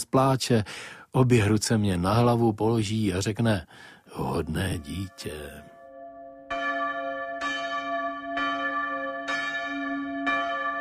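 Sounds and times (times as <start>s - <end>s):
speech: 0.0s - 5.7s
church bell striking the fifth hour: 4.7s - 10.8s.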